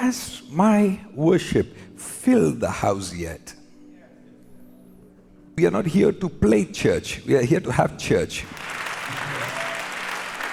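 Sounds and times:
speech: 0.1s - 3.6s, 5.6s - 8.8s
audience applause: 8.5s - 10.5s.

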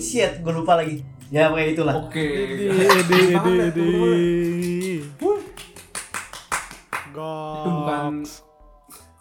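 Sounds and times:
speech: 0.2s - 5.3s, 7.2s - 8.5s
laughter: 2.1s - 5.6s
hand claps: 4.3s - 7.1s.

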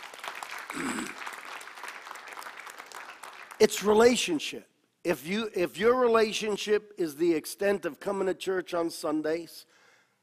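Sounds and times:
crowd clapping: 0.0s - 4.2s
speech: 3.6s - 9.7s.

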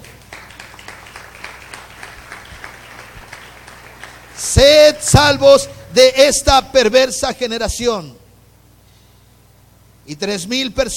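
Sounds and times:
audience applause: 0.0s - 4.7s
speech: 4.4s - 8.2s, 10.1s - 10.9s.

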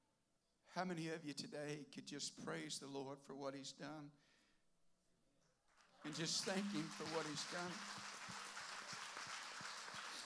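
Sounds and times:
speech: 0.7s - 4.3s, 6.0s - 8.4s
audience clapping: 5.7s - 10.2s.

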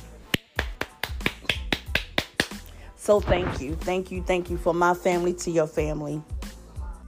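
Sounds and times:
hands clapping: 0.2s - 2.7s
speech: 3.1s - 6.4s.

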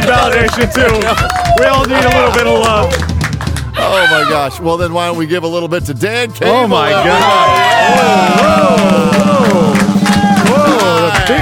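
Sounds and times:
crowd applause and cheering: 0.0s - 4.3s, 6.8s - 11.4s
speech: 0.2s - 3.1s, 3.9s - 9.9s, 10.5s - 11.4s.

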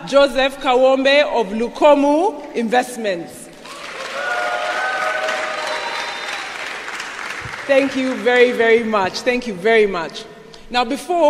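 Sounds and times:
speech: 0.0s - 3.4s, 7.7s - 11.2s
audience applause welcoming a guest speaker at a morning event: 3.6s - 8.6s.

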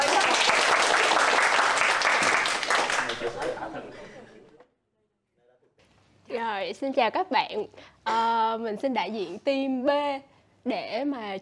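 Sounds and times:
audience applause: 0.0s - 3.7s
laughter: 3.0s - 4.6s
speech: 6.7s - 11.4s.

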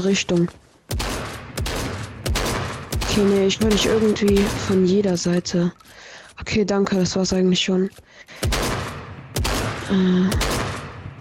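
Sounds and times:
speech: 0.0s - 1.1s, 3.2s - 8.6s, 9.9s - 10.5s
gunfire in the video game Fortnite: 0.9s - 5.2s, 8.4s - 11.0s.

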